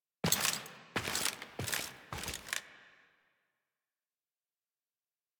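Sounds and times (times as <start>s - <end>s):
foley footsteps: 0.3s - 2.6s.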